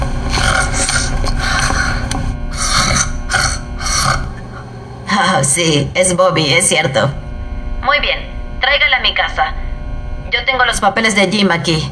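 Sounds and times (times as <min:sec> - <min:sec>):
snoring: 0:00.2 - 0:04.7
speech: 0:05.5 - 0:07.2, 0:07.9 - 0:09.6, 0:10.3 - 0:11.8.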